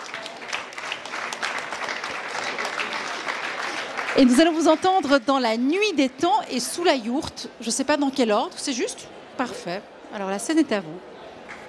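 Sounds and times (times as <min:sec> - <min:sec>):
audience applause: 0:00.0 - 0:05.0
speech: 0:04.2 - 0:11.1.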